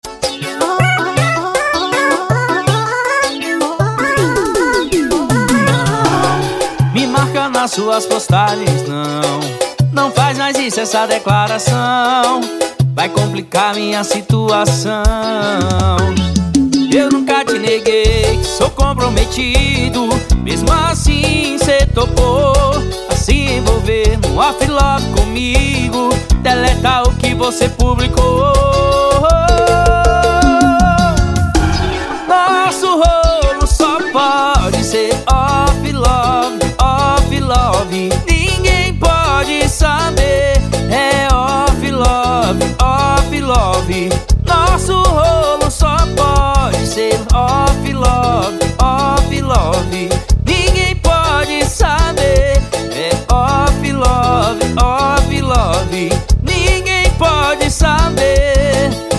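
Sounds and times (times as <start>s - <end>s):
piseiro music: 0.0s - 59.1s.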